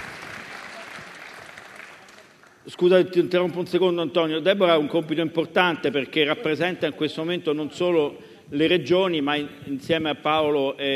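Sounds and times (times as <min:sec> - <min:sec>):
audience applause welcoming a politician on stage at a political event: 0:00.0 - 0:02.6
speech: 0:02.6 - 0:10.9.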